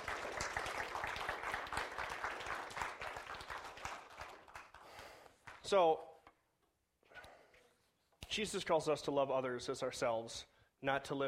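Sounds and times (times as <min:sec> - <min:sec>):
applause: 0:00.0 - 0:05.7
speech: 0:05.7 - 0:06.1, 0:08.4 - 0:11.2.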